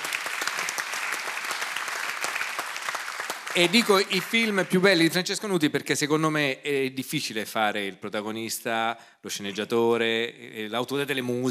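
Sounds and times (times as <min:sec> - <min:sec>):
audience applause: 0:00.0 - 0:05.2
speech: 0:03.6 - 0:11.4.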